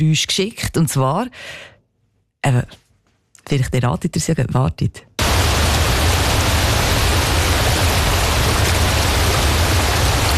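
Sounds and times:
speech: 0.0 - 1.7, 2.4 - 2.8, 3.5 - 5.1
rushing waterfall: 5.2 - 10.3.

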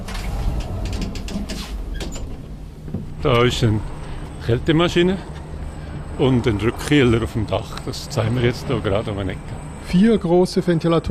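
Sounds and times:
lift sliding doors rattling and clunking: 0.0 - 3.7
lift humming: 0.0 - 10.4
speech: 3.2 - 5.3, 6.2 - 11.0.

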